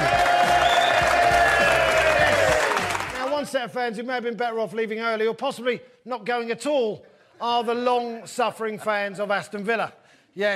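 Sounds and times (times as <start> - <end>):
studio audience cheering and whooping: 0.0 - 3.2
studio audience applauding to welcome guests: 0.0 - 3.6
speech: 3.6 - 10.5.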